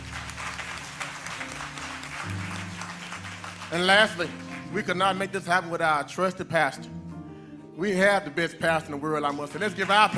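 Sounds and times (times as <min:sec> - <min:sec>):
audience applause: 0:00.0 - 0:04.8, 0:09.6 - 0:10.1
speech: 0:03.7 - 0:07.0, 0:07.8 - 0:10.1.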